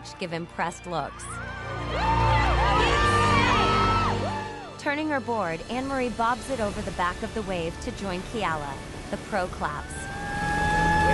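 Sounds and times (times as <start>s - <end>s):
speech: 0.0s - 3.0s, 4.8s - 10.0s
people on a beach cheering at a surfing competition: 1.1s - 4.8s, 9.9s - 11.1s.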